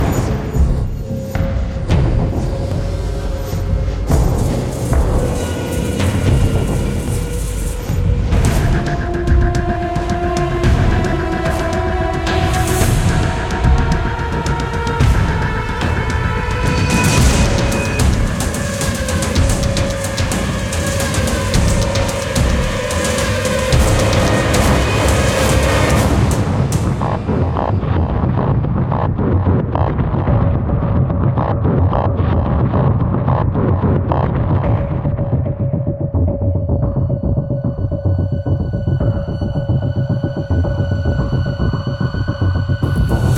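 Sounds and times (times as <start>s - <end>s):
tactical combat music: 0.0s - 43.3s.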